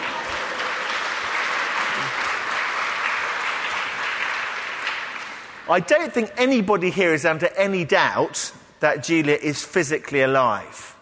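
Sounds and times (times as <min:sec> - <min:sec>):
crowd clapping: 0:00.0 - 0:05.9
speech: 0:05.7 - 0:11.0.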